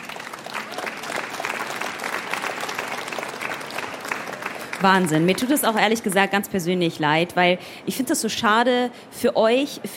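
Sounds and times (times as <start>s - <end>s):
sustained crowd applause: 0.0s - 6.2s
speech: 4.8s - 9.9s.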